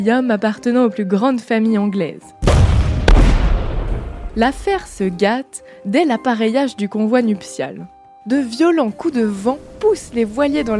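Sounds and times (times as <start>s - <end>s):
speech: 0.0s - 2.7s, 4.4s - 10.7s
artillery salvo: 2.4s - 5.0s.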